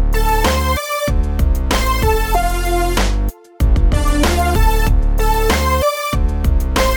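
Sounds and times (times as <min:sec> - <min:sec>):
eighth-note rhythm: 0:00.1 - 0:06.9.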